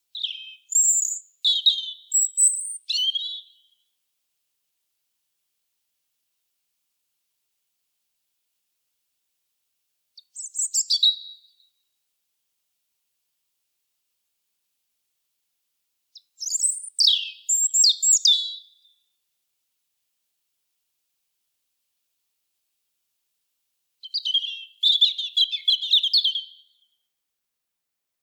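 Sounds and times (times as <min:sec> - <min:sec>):
European robin Erithacus rubecula song of thin whistles and quick trills: 0:00.1 - 0:03.8, 0:10.2 - 0:11.8, 0:16.2 - 0:19.0, 0:24.0 - 0:27.0.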